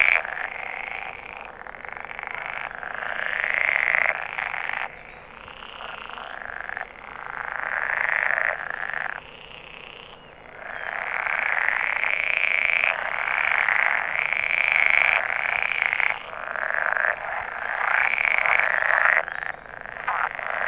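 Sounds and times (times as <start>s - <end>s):
pool frog mating calls: 0.0s - 20.6s.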